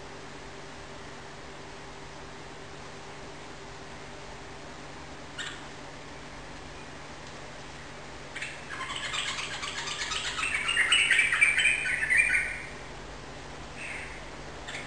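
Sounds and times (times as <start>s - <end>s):
yellow-vented bulbul singing rapid continuous chattering song indoors in a room: 8.4s - 12.8s, 13.8s - 14.8s.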